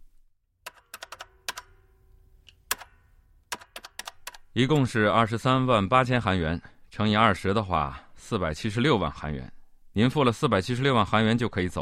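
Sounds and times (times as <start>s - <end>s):
calculator keys being pressed: 0.7s - 1.8s, 2.5s - 4.5s
speech: 4.6s - 11.8s.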